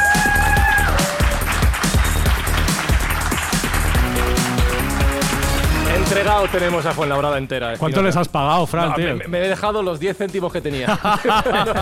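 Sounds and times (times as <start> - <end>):
audience applause: 0.0 - 6.9
loud upbeat music with pounding drum beat: 0.0 - 11.7
speech: 6.3 - 11.7
laughter: 10.8 - 11.7.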